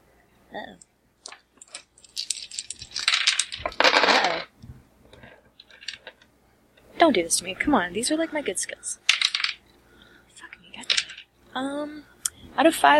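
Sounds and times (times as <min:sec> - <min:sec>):
speech: 0:00.5 - 0:00.9, 0:07.0 - 0:09.1, 0:11.6 - 0:12.9
five dice rolling on a hard surface: 0:01.2 - 0:04.5, 0:05.2 - 0:06.2, 0:09.1 - 0:09.6, 0:10.4 - 0:11.3.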